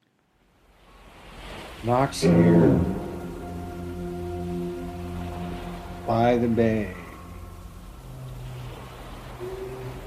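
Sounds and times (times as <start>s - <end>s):
speech: 1.8s - 3.0s, 6.1s - 7.0s
foghorn sounding by the bay: 2.2s - 10.0s.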